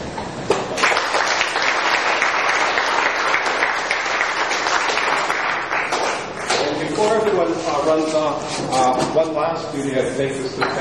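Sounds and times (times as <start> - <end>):
audience applause: 0.8 - 6.8
speech: 7.2 - 10.7.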